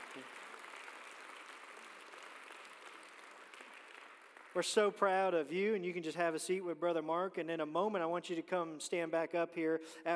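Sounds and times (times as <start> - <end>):
audience applauding: 0.0 - 4.7
speech: 0.2 - 0.4, 4.5 - 10.1.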